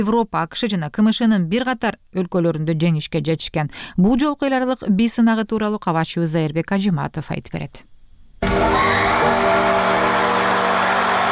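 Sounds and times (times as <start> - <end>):
speech: 0.0 - 7.9
judges and audience cheering after a dance crew performs at a talent competition in Malaysia: 8.4 - 11.2.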